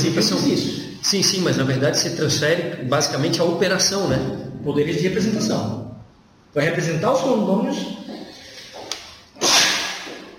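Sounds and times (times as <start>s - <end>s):
speech: 0.0s - 5.9s, 6.5s - 8.1s
sneeze: 9.4s - 10.3s.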